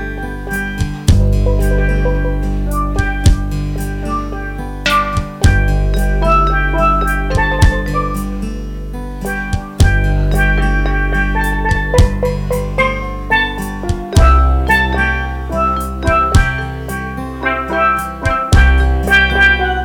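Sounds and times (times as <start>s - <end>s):
steel drum: 0.5s - 19.8s.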